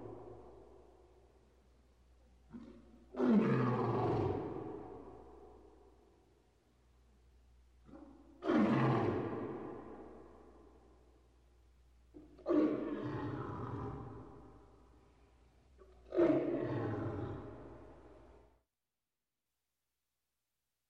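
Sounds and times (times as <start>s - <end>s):
lion roaring: 2.5s - 5.0s, 7.9s - 10.2s, 12.4s - 14.4s, 16.0s - 17.8s.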